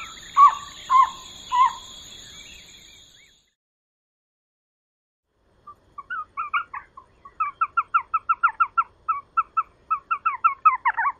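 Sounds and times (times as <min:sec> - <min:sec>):
Elf owl chatter in a desert in the USA: 0:00.0 - 0:02.0, 0:05.7 - 0:11.1.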